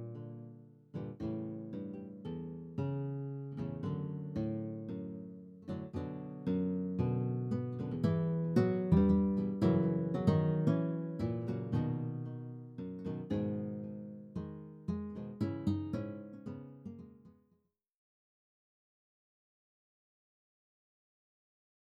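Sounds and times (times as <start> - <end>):
classical guitar: 0.0 - 17.4.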